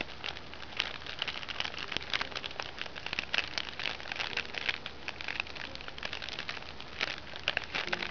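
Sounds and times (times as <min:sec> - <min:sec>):
fire: 0:00.0 - 0:08.1.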